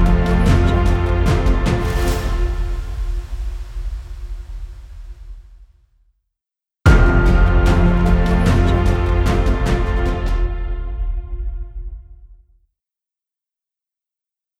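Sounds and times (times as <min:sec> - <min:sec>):
uplifting motivational cinematic logo music: 0:00.0 - 0:05.7, 0:06.9 - 0:12.0.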